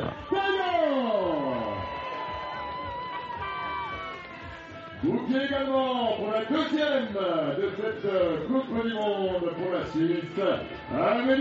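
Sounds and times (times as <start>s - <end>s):
audience applause: 1.0s - 5.0s
speech: 5.3s - 11.3s.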